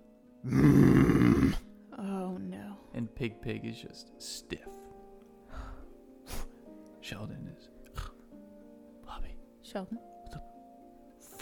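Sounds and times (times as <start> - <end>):
speech: 0.4 - 0.8, 3.2 - 4.8, 7.1 - 7.8, 9.7 - 10.5
voice imitating a creature's roar: 0.4 - 1.6.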